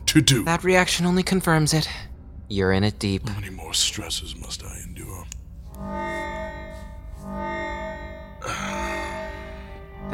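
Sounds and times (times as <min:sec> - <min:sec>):
speech: 0:00.1 - 0:06.0
perimeter alarm: 0:05.7 - 0:10.1.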